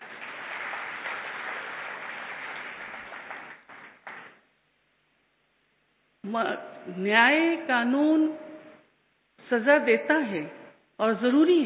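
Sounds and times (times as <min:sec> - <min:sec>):
audience applause: 0:00.0 - 0:04.4
speech: 0:06.2 - 0:08.4, 0:09.5 - 0:11.6.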